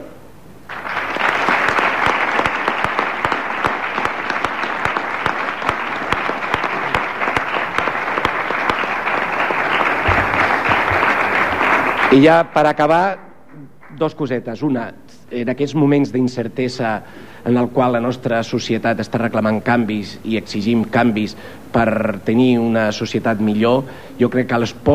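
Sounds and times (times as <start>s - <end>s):
audience applause: 0.7s - 14.0s
speech: 12.2s - 24.9s.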